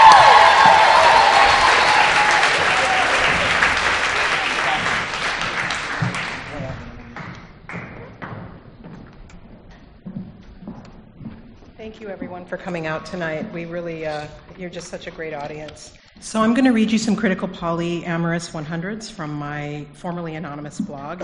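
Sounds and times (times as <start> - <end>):
Houston audience applauding to welcome a speaker: 0.0 - 8.1
speech: 12.4 - 21.2.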